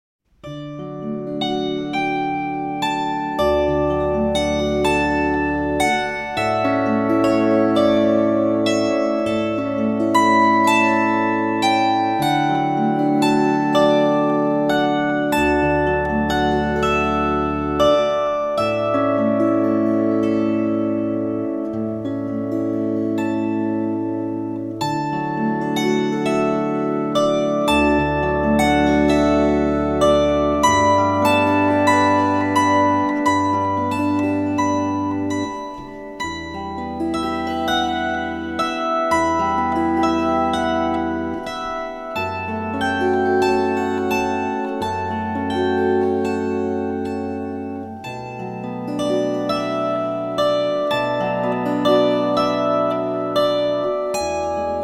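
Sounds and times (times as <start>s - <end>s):
adagio from a guitar concerto: 0.3s - 54.8s.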